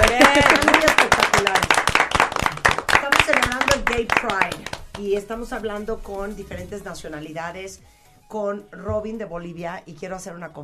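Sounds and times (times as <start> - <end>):
small group applause: 0.0 - 5.2
speech: 4.3 - 10.6.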